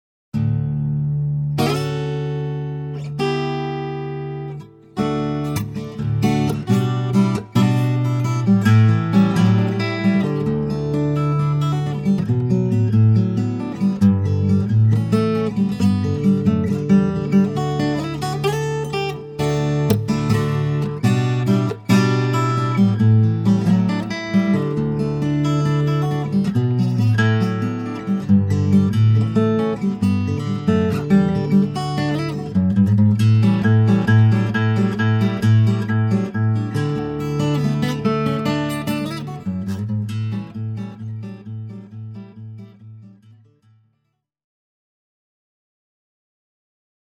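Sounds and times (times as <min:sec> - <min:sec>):
guitar: 0:00.3 - 0:44.2.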